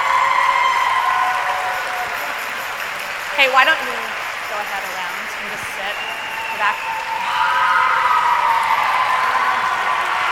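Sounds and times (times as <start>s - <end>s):
audience round of applause: 0.0s - 10.3s
speech: 3.4s - 9.0s.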